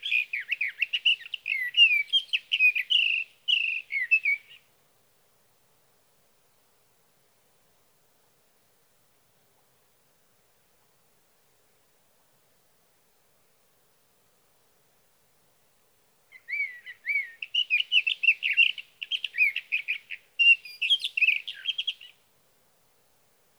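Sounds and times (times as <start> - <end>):
Sage Thrasher singing through the night: 0.0 - 4.6, 16.4 - 22.2.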